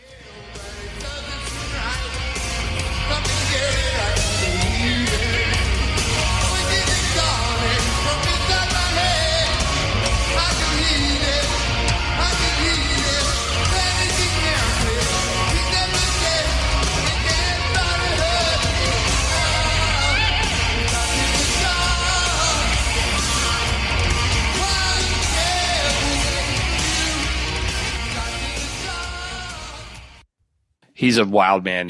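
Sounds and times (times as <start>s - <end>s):
crowd noise: 0.0s - 30.2s
distorted guitar: 0.0s - 30.2s
speech: 31.0s - 31.8s.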